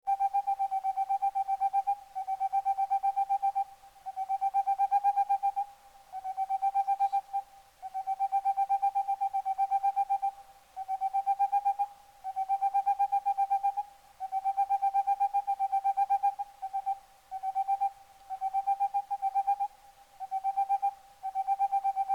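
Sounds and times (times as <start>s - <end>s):
boreal owl hooting song: 0.2s - 22.1s.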